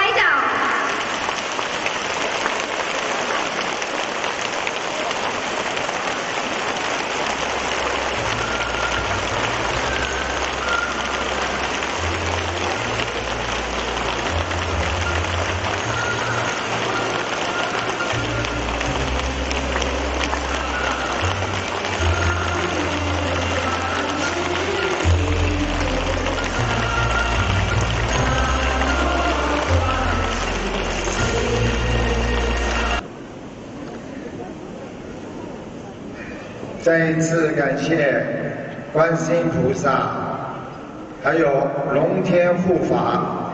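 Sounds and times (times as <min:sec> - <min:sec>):
warm audience applause: 0:00.0 - 0:33.0
speech: 0:36.9 - 0:38.2, 0:39.0 - 0:40.2, 0:41.2 - 0:41.6, 0:42.2 - 0:43.3.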